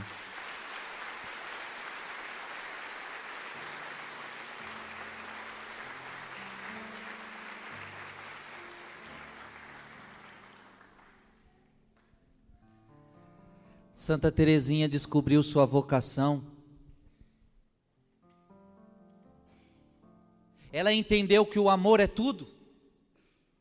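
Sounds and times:
audience applause: 0:00.0 - 0:11.4
speech: 0:14.0 - 0:16.5, 0:20.8 - 0:22.6.

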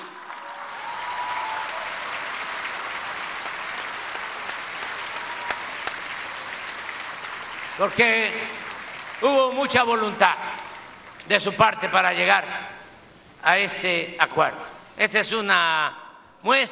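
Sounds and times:
audience applause: 0:00.0 - 0:11.3
speech: 0:07.8 - 0:08.6, 0:09.2 - 0:10.5, 0:11.3 - 0:12.8, 0:13.4 - 0:16.7.

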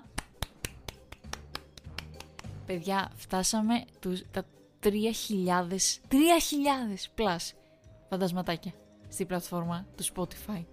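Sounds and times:
applause: 0:00.2 - 0:02.6
speech: 0:02.7 - 0:10.7.

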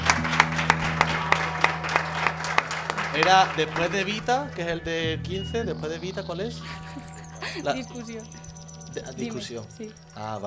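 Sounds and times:
audience applause: 0:00.0 - 0:05.2
laughter: 0:00.6 - 0:05.2, 0:06.0 - 0:08.3, 0:09.0 - 0:09.8
speech: 0:03.2 - 0:06.9, 0:07.6 - 0:08.4, 0:09.0 - 0:10.4.

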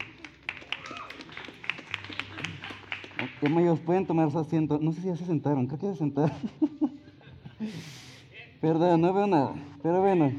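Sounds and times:
audience applause for the band: 0:00.0 - 0:03.8
laughter: 0:00.8 - 0:03.5, 0:06.1 - 0:08.2
speech: 0:03.4 - 0:07.0, 0:07.6 - 0:08.0, 0:08.6 - 0:10.3.

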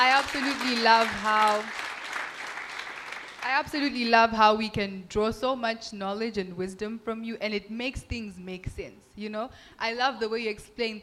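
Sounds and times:
speech: 0:00.0 - 0:01.9, 0:03.4 - 0:11.0
round of applause: 0:00.0 - 0:03.6.

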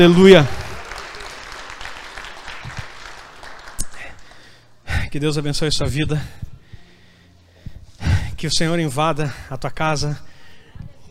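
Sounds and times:
speech: 0:00.0 - 0:00.6, 0:05.2 - 0:06.5, 0:08.4 - 0:10.3
audience applauding: 0:00.0 - 0:04.6.

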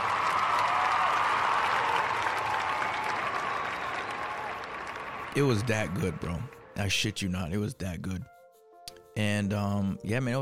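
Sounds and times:
sustained applause from a crowd: 0:00.0 - 0:06.5
speech: 0:05.4 - 0:08.3, 0:09.2 - 0:10.4.

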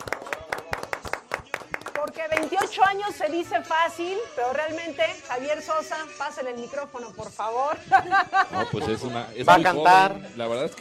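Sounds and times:
applause: 0:00.0 - 0:03.0
speech: 0:02.0 - 0:10.7
laughter: 0:07.7 - 0:09.3.

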